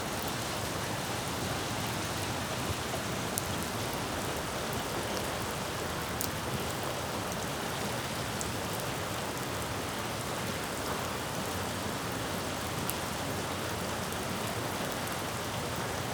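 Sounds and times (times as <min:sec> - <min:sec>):
rain splattering on a city street: 0:00.0 - 0:16.1.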